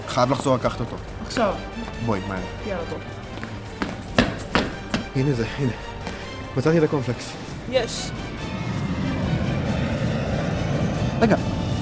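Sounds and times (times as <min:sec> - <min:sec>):
speech: 0:00.2 - 0:03.2, 0:05.2 - 0:05.9, 0:06.6 - 0:08.3, 0:11.2 - 0:11.5
airplane taking off: 0:05.0 - 0:11.7.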